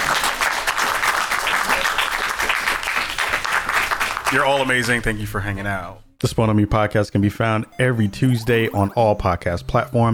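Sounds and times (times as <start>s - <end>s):
audience applause: 0.0s - 5.0s
speech: 4.3s - 10.1s.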